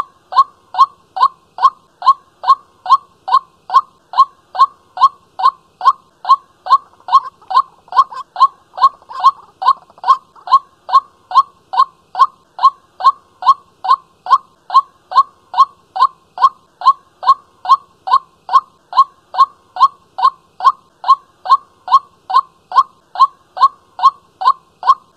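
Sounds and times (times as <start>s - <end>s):
white-breasted waterhen calling: 0.0s - 25.1s.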